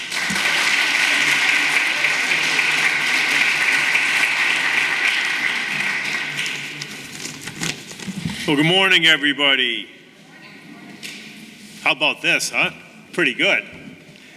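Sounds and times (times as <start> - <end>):
audience applause welcoming a state senator: 0.0 - 7.3
speech: 8.5 - 10.0, 11.9 - 13.8.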